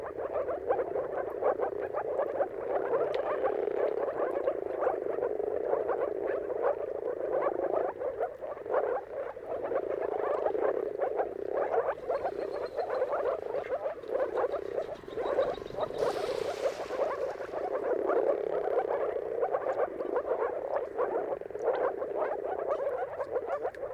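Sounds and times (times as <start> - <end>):
Moor frog chorus of low gurgling pulsed calls: 0.0 - 23.9
rushing noise burst: 14.5 - 17.9.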